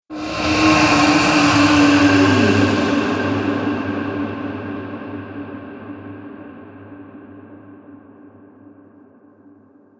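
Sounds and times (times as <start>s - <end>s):
dragon monster reverb swell: 0.1s - 4.5s.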